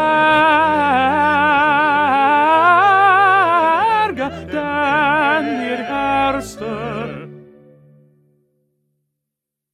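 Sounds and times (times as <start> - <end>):
first tenor voice singing: 0.0 - 7.6.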